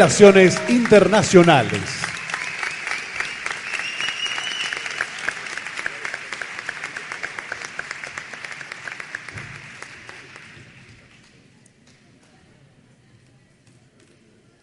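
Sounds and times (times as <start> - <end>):
speech: 0.0 - 2.0
audience applause: 0.0 - 11.2.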